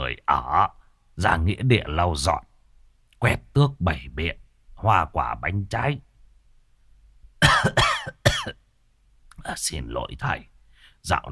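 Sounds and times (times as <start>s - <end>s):
speech: 0.1s - 2.5s, 3.2s - 6.1s, 7.4s - 8.6s, 9.4s - 11.3s
old man coughing: 7.4s - 8.6s.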